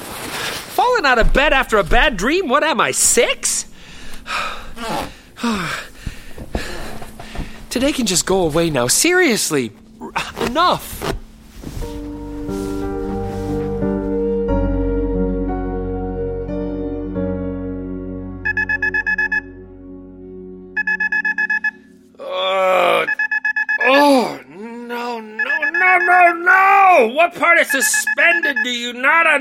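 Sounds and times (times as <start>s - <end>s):
speech: 1.0s - 3.7s, 4.3s - 5.9s, 7.7s - 11.1s, 27.7s - 29.4s
low droning tones: 3.2s - 20.8s
person groaning: 4.3s - 5.9s, 22.2s - 23.2s, 23.8s - 25.4s
alarm ringing in high-pitched electronic beeping: 18.4s - 19.6s, 20.8s - 22.0s, 23.1s - 23.9s, 25.4s - 26.4s, 27.5s - 28.9s.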